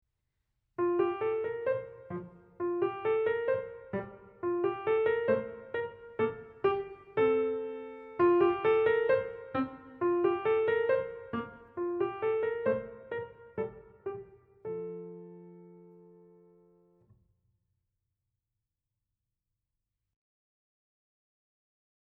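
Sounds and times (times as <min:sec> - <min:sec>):
piano: 0:00.8 - 0:17.2.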